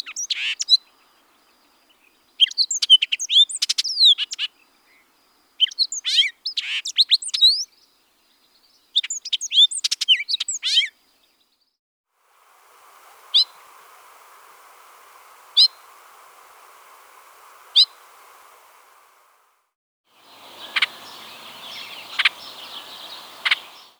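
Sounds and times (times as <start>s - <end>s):
hooded oriole calls: 0.0s - 7.8s, 8.9s - 11.0s, 20.2s - 23.9s.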